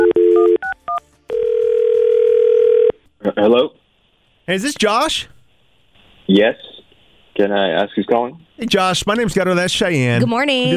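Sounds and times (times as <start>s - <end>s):
long steady phone tone as the call goes through: 0.0s - 3.0s
speech: 3.4s - 3.8s, 4.5s - 5.4s, 6.3s - 6.7s, 7.4s - 10.7s.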